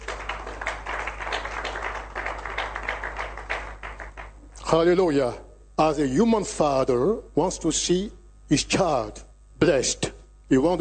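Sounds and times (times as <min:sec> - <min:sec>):
audience clapping: 0:00.0 - 0:04.7
speech: 0:04.7 - 0:10.7.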